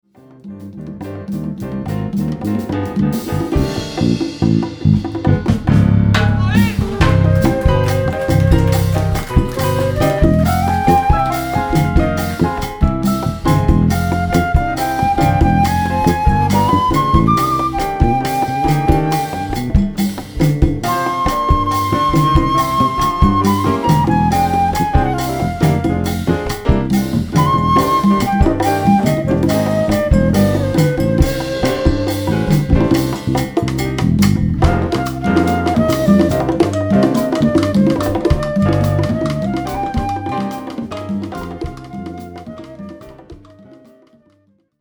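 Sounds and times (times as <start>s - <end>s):
Latin jazz music: 0.0s - 44.7s.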